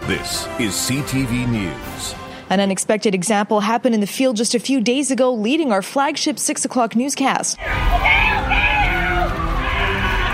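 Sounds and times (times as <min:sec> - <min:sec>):
speech: 0:00.1 - 0:08.8
screams of pain and terror as police dogs take down suspects: 0:07.6 - 0:10.3.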